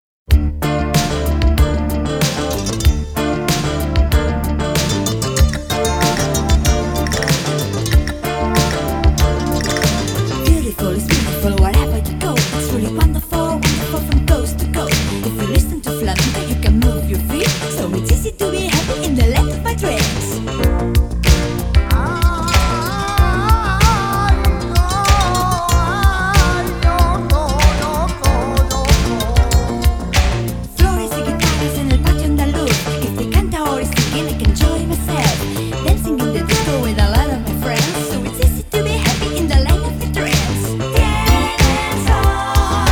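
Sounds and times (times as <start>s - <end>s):
flamenco rap: 0.3s - 42.9s.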